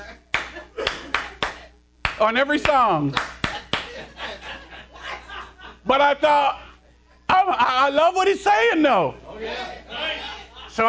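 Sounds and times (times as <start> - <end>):
laughter: 0.0 - 1.7, 3.1 - 6.0, 9.5 - 10.8
hands clapping in rhythm: 0.3 - 4.0
speech: 2.2 - 3.3, 5.8 - 6.6, 7.4 - 9.8.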